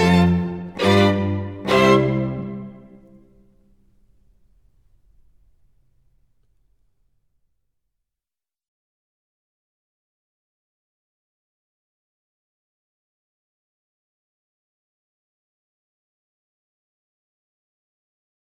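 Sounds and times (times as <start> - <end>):
string quartet playing: 0.0 - 3.8.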